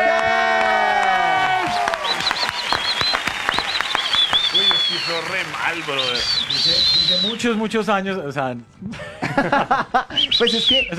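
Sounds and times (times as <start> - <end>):
audience applause: 0.0 - 7.8
laughter: 1.1 - 10.9
speech: 5.5 - 10.9.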